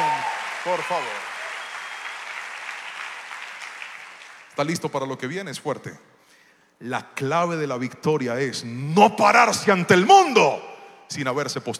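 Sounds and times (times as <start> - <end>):
audience applauding: 0.0 - 4.6
speech: 0.6 - 1.3, 4.6 - 6.1, 6.8 - 11.7.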